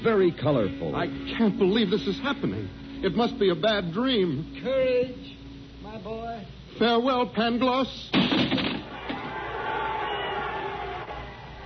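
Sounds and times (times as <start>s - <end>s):
speech: 0.0s - 8.7s
panicked crowd shouting: 8.9s - 11.6s.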